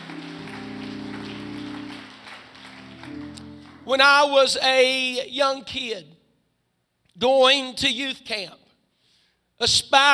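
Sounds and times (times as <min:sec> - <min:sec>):
audience clapping hands: 0:00.0 - 0:04.3
sustained held keyboard chords: 0:00.0 - 0:04.7
speech: 0:03.9 - 0:06.1, 0:07.2 - 0:08.6, 0:09.6 - 0:10.1.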